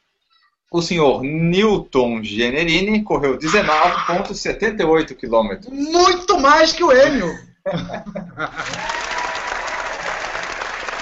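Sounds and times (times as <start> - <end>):
speech: 0.7 - 9.1
laughter: 3.4 - 4.3, 7.2 - 9.0
crowd applauding: 8.5 - 10.9.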